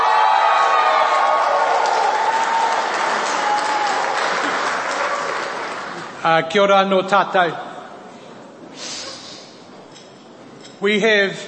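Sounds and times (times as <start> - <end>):
audience applause for a performing group at Parliament: 0.0 - 6.2
speech: 6.2 - 7.6, 10.8 - 11.4.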